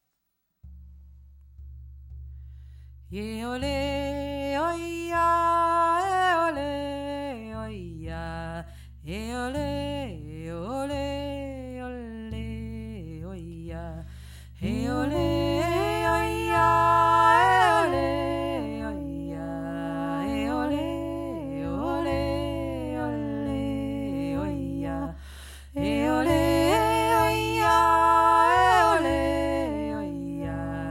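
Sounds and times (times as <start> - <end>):
joik singing: 3.1 - 30.8.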